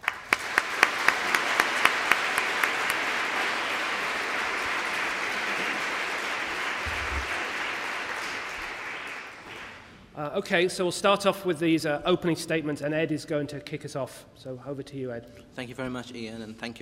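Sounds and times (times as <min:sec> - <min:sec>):
audience clapping welcoming a panel of speakers: 0:00.0 - 0:10.0
speech: 0:10.2 - 0:16.7.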